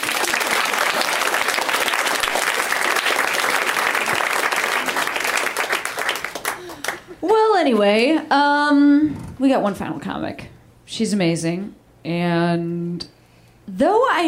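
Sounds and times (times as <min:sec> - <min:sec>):
audience applause: 0:00.0 - 0:07.2
speech: 0:07.6 - 0:14.2.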